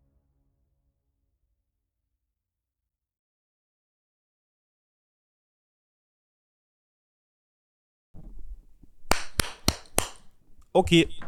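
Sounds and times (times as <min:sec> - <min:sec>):
hand claps for audio sync: 0:08.2 - 0:11.2
speech: 0:10.8 - 0:11.2.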